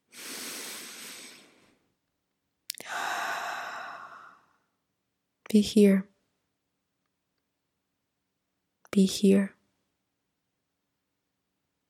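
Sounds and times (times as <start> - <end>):
deep breaths in a guided breathing moment: 0.0 - 1.9, 2.8 - 4.7
speech: 5.5 - 6.1, 9.0 - 9.6.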